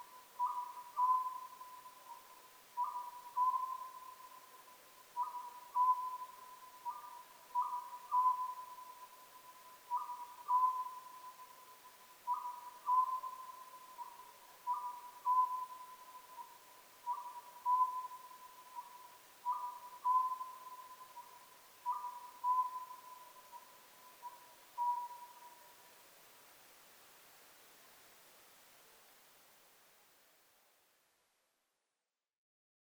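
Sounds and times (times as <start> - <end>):
Japanese scops owl calling: 0.0 - 25.7.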